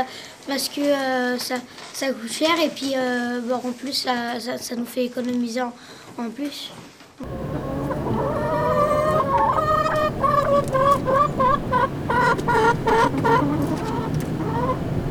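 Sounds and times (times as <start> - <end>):
speech: 0.0 - 7.5
hens clucking: 7.2 - 15.0.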